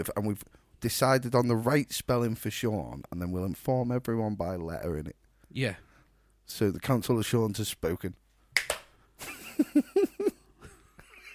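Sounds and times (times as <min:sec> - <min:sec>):
speech: 0:00.0 - 0:05.9, 0:06.5 - 0:08.2, 0:09.2 - 0:10.1
ceremonial hand claps: 0:08.5 - 0:09.0
laughter: 0:09.2 - 0:11.3.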